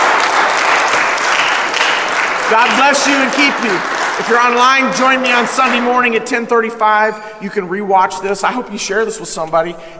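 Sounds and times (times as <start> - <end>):
crowd clapping: 0.0 - 6.9
speech: 2.5 - 9.9.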